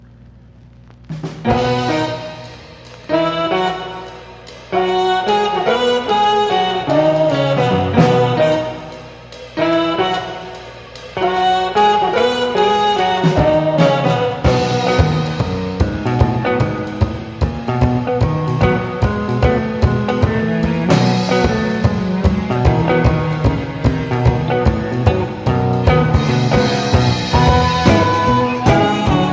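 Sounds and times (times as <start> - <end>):
instrumental music: 1.0 - 29.3.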